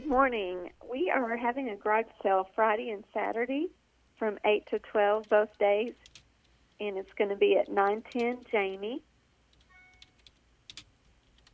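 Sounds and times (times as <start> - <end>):
speech: 0.1 - 6.1, 6.8 - 9.1
typing on a computer keyboard: 5.2 - 7.2, 7.8 - 8.5, 9.5 - 11.5.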